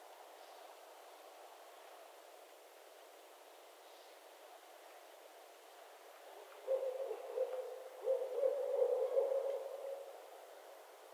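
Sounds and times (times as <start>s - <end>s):
soft continuous background noise: 0.0s - 11.1s
barred owl hooting: 6.6s - 10.1s.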